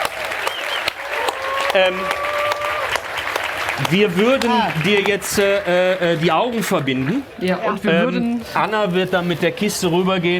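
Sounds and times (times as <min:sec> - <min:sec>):
live audience applauding: 0:00.0 - 0:07.4
speech: 0:01.8 - 0:02.3, 0:03.8 - 0:10.3.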